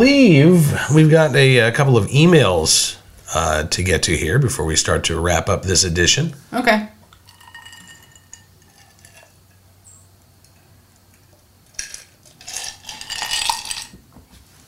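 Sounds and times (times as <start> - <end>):
speech: 0.0 - 7.0
glass tinkling: 7.2 - 9.4, 12.4 - 14.0.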